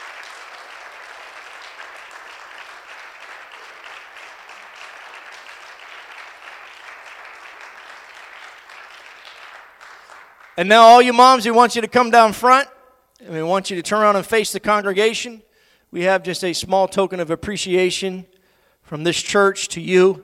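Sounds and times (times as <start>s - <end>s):
audience applauding: 0.0s - 11.0s
speech: 10.6s - 20.2s.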